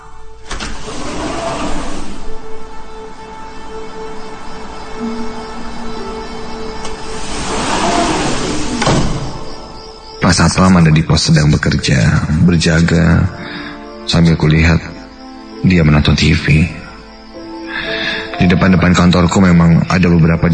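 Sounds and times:
office automatic sliding door whirring open: 0.4s - 2.5s, 6.5s - 9.8s
speech: 10.3s - 14.9s, 15.6s - 16.8s, 18.4s - 20.5s.

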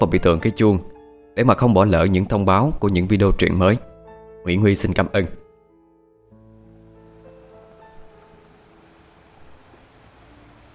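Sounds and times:
speech: 0.0s - 5.4s
ocean surf rolling onto the shore: 7.0s - 10.7s.

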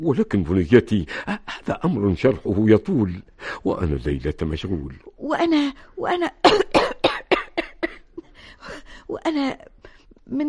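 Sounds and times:
speech: 0.0s - 6.9s, 8.7s - 9.7s, 10.3s - 10.4s
harsh coughing fit: 6.5s - 8.3s.

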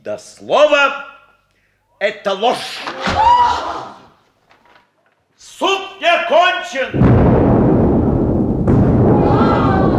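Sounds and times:
speech: 0.0s - 1.1s, 2.0s - 4.0s, 5.6s - 7.6s
thunder from a lightning strike: 6.9s - 9.9s.

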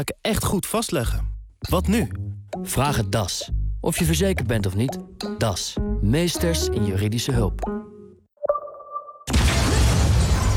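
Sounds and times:
speech: 0.0s - 7.8s
explosion in an apartment building: 9.3s - 10.5s.

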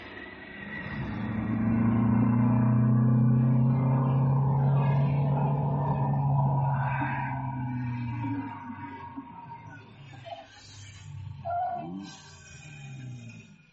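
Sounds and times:
car engine idling on a road: 0.0s - 13.7s.

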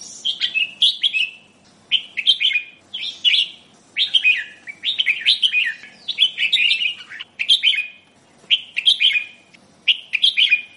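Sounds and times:
sooty-headed bulbul singing bubbly phrases of liquid whistled notes: 0.0s - 10.7s.

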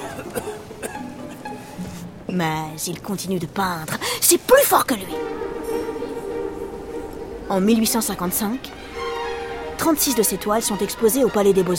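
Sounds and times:
man coughing: 0.0s - 1.0s
speech: 2.3s - 5.6s, 7.5s - 8.8s, 9.8s - 11.7s.

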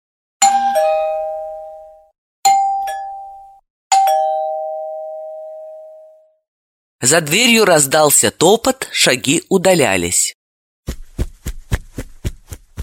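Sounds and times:
doorbell two-note ding-dong chime: 0.4s - 6.4s
speech: 7.0s - 10.4s.

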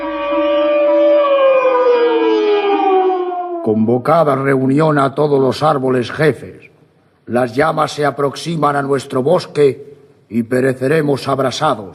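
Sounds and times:
alarm siren: 0.0s - 3.9s
speech: 3.6s - 6.7s, 7.3s - 11.9s.

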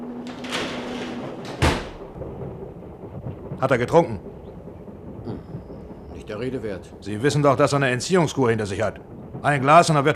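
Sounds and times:
door pushed shut with a firm thud: 0.0s - 2.4s
speech: 3.6s - 4.3s, 6.3s - 10.1s.

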